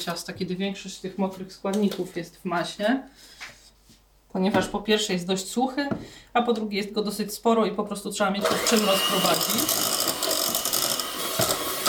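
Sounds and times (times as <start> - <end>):
speech: 0.0 - 3.6, 4.3 - 10.0
electric mixer whirring: 8.4 - 11.8.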